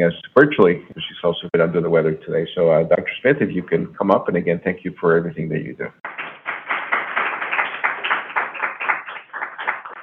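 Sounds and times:
speech: 0.0 - 6.3
audience applause at Grand Rounds: 6.0 - 10.0.

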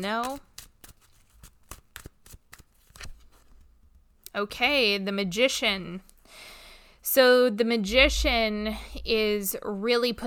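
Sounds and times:
speech: 0.0 - 0.5, 4.4 - 10.2
tarot cards shuffled by hand: 0.0 - 3.7.

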